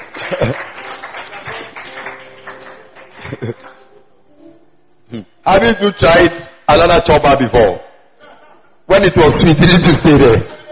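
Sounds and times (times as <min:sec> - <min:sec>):
crowd clapping: 0:00.0 - 0:03.9
speech: 0:00.3 - 0:00.8, 0:03.4 - 0:03.8, 0:05.2 - 0:07.8, 0:08.9 - 0:10.6.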